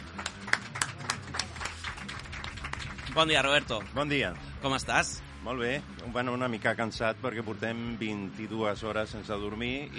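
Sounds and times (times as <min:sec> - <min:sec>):
applause: 0:00.0 - 0:04.9
speech: 0:03.2 - 0:09.9.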